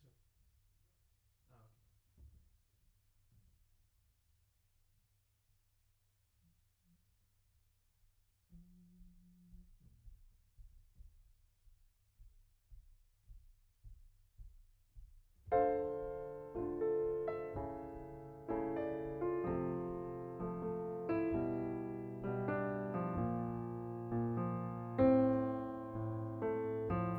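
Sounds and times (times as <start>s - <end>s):
piano note B: 15.5s - 27.1s.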